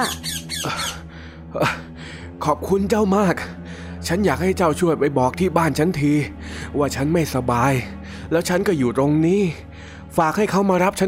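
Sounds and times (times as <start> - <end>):
speech: 0.0 - 0.8, 1.5 - 1.8, 2.4 - 11.0
parrot squawking: 0.0 - 1.0.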